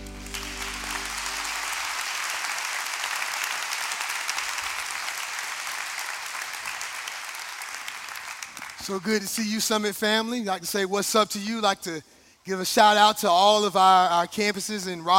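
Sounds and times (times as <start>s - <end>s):
low musical tone: 0.0s - 1.7s
church congregation applause welcoming a pastor: 0.0s - 9.8s
speech: 8.8s - 15.1s.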